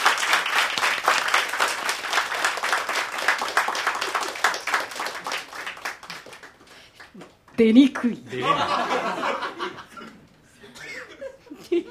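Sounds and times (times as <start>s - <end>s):
audience applause: 0.0s - 7.3s
speech: 7.6s - 9.4s
laughter: 8.3s - 11.9s.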